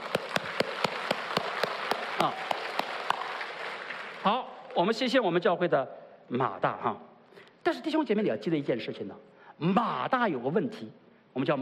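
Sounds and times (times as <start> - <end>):
audience applauding: 0.0 - 4.8
speech: 2.2 - 2.4, 4.2 - 11.5.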